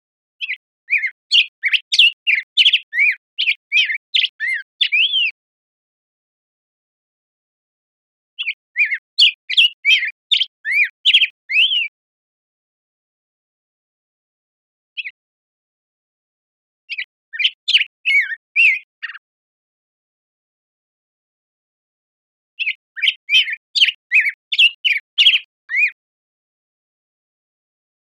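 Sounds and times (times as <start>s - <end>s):
black-headed grosbeak warbling song: 0.4s - 5.4s, 8.4s - 11.9s, 15.0s - 15.2s, 16.9s - 19.2s, 22.6s - 26.0s.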